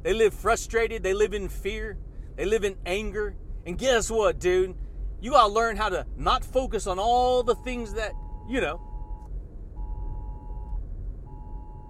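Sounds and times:
speech: 0.0s - 8.9s
low rumbling hum: 0.0s - 11.8s
Amber Alert emergency alert tone on phone: 7.5s - 9.2s, 9.8s - 11.8s.

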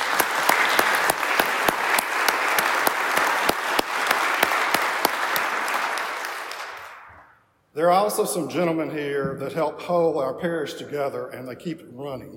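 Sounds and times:
audience applause: 0.0s - 7.3s
speech: 7.8s - 12.3s.

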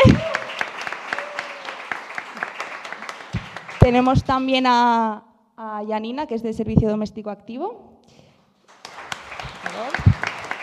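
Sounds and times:
audience applause: 0.0s - 4.2s, 8.7s - 10.6s
speech: 3.9s - 7.9s.

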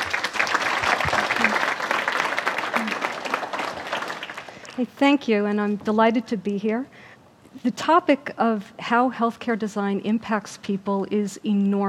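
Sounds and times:
audience applause greeting a speaker for an evening talk: 0.0s - 4.8s
speech: 4.8s - 7.0s, 7.6s - 11.8s.

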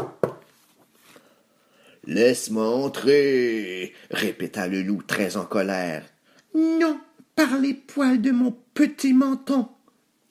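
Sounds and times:
knock on a wooden door: 0.0s - 0.4s
speech: 2.1s - 10.2s.

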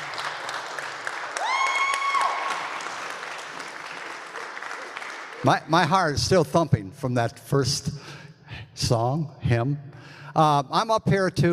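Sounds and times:
audience applause after hymn: 0.0s - 5.6s
speech: 5.4s - 8.2s, 8.8s - 11.5s.

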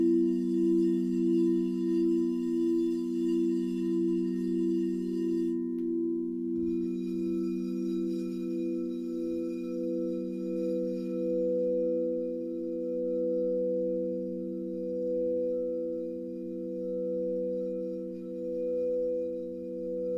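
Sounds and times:
singing bowls ringing: 0.0s - 20.1s.

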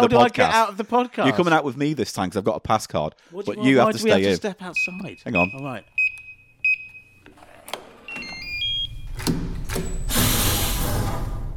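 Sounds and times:
speech: 0.0s - 6.0s
electronic beeps and stepped tones: 4.8s - 7.1s, 8.1s - 9.2s
sci-fi sliding door sound effect: 8.0s - 11.5s.

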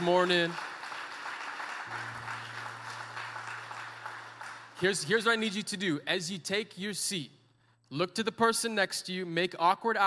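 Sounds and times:
speech: 0.0s - 0.7s, 4.8s - 10.0s
crowd clapping hands: 0.0s - 5.7s
low sustained hum: 1.9s - 5.2s.

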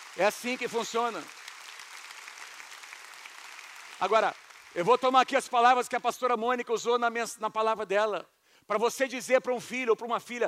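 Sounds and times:
audience applause: 0.0s - 5.2s
speech: 0.2s - 1.4s, 4.0s - 10.4s.

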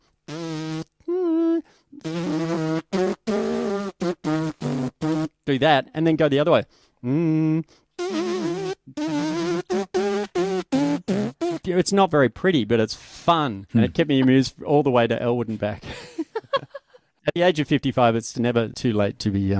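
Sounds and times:
lip buzzing: 0.3s - 5.4s, 7.0s - 11.7s
speech: 5.5s - 7.8s, 11.7s - 15.9s, 17.3s - 19.5s
laughter: 15.8s - 17.0s.

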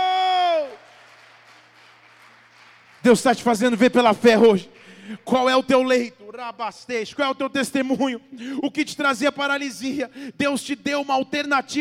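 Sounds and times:
audience applauding: 0.0s - 4.5s
speech: 3.0s - 11.8s.

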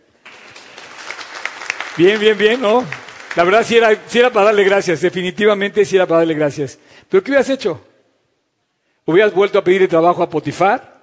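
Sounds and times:
audience applause: 0.0s - 5.0s
speech: 2.0s - 7.9s, 9.1s - 10.9s.

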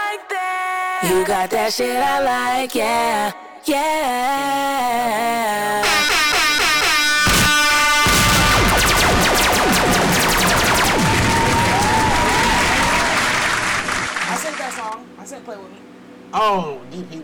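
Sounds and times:
speech: 1.0s - 6.2s, 16.3s - 17.2s
air horn blasts: 5.8s - 8.8s
sliding tones: 5.8s - 11.0s
clapping sound effect: 11.3s - 15.0s.

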